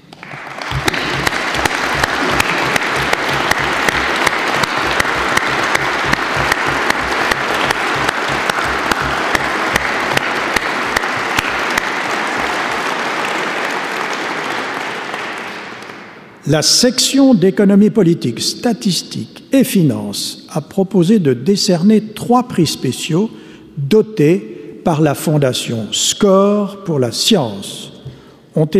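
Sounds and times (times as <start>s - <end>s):
audience applause: 0.0s - 16.2s
speech: 16.5s - 27.9s, 28.5s - 28.7s.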